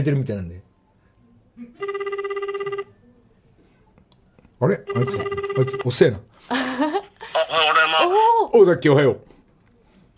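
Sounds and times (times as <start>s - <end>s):
speech: 0.0s - 0.7s, 4.6s - 9.3s
telephone ringing on an outgoing call to a radio listener: 1.8s - 3.0s, 4.8s - 6.1s.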